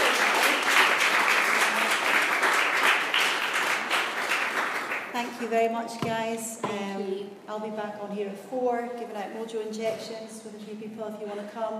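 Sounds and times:
audience applause: 0.0s - 5.2s
speech: 5.2s - 11.7s.

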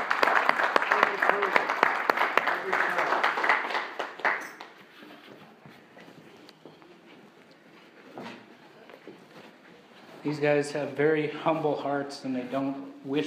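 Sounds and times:
audience applauding: 0.0s - 5.0s
speech: 10.2s - 13.2s.

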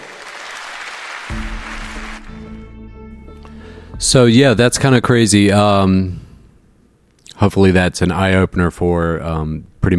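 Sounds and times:
audience applause: 0.0s - 2.6s
speech: 4.0s - 6.2s, 7.4s - 9.9s.

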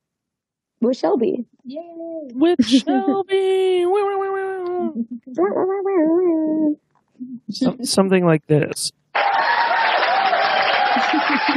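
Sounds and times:
speech: 0.8s - 9.3s, 11.2s - 11.5s
laughter: 2.4s - 3.3s, 9.2s - 11.5s
loud clapping: 9.2s - 11.5s.

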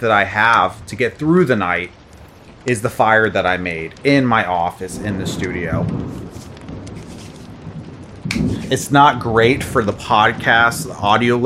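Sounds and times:
speech: 0.0s - 2.0s, 2.6s - 6.2s, 8.4s - 11.4s
rain on a window during storm: 0.0s - 11.4s.

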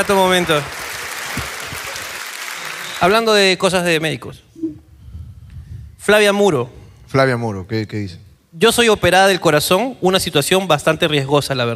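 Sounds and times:
speech: 0.0s - 0.8s, 3.0s - 4.4s, 6.1s - 11.7s
audience applause: 0.0s - 3.6s.

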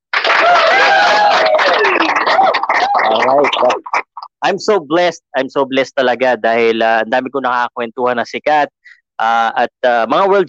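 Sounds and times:
audience applause: 0.1s - 4.2s
speech: 3.1s - 10.4s.

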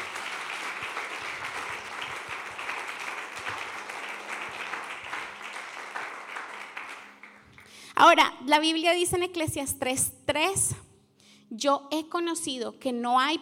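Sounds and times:
audience applause: 0.0s - 7.8s
speech: 8.0s - 10.8s, 11.5s - 13.4s.

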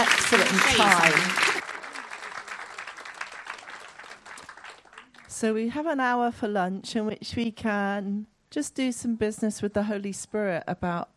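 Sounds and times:
crowd applauding: 0.0s - 5.4s
speech: 0.3s - 1.5s, 5.4s - 11.1s.

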